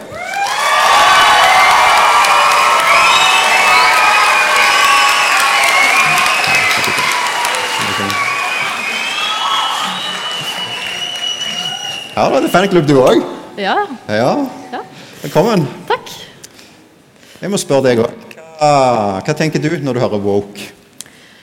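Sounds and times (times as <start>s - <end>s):
crowd cheering and whooping: 0.0s - 12.8s
audience applause: 0.0s - 13.0s
speech: 12.2s - 14.6s, 15.2s - 15.8s, 17.4s - 20.8s.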